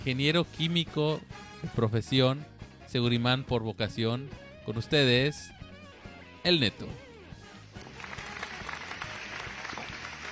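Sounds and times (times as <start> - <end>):
speech: 0.0 - 5.6, 6.4 - 7.0
applause: 7.6 - 10.3.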